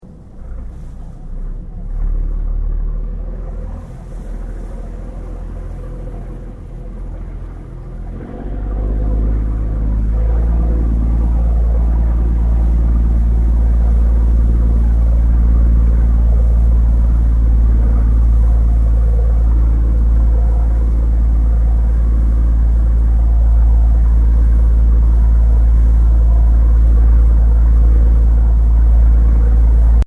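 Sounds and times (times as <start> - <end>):
tourist ferry engine idling to slow move: 0.0 - 30.0.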